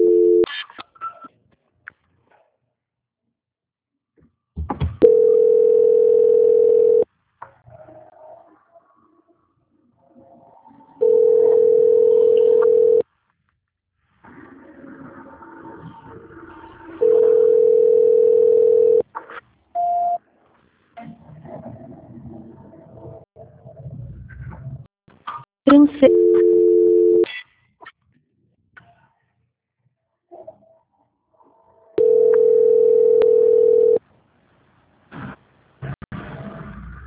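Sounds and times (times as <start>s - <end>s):
telephone tones during a call transfer: 0.0s - 0.5s, 5.0s - 7.1s, 11.0s - 13.0s, 17.0s - 19.0s, 26.0s - 27.3s, 32.0s - 34.0s.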